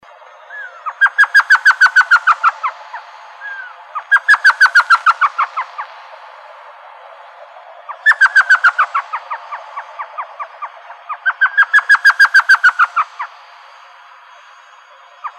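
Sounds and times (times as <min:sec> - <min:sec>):
elf owl giving yelping notes in Arizona: 0:00.5 - 0:05.9, 0:07.9 - 0:13.3.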